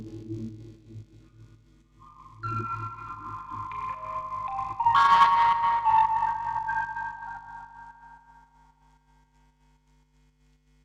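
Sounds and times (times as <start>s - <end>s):
quartet of music boxes recorded on tape: 2.5s - 8.2s.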